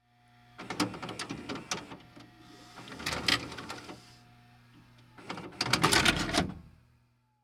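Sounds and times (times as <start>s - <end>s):
VCR ejecting a tape: 0.6s - 4.1s, 5.2s - 6.6s.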